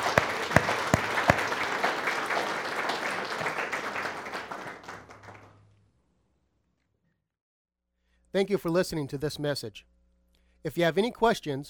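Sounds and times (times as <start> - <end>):
audience applauding: 0.0 - 5.6
speech: 8.4 - 10.0, 10.6 - 11.6.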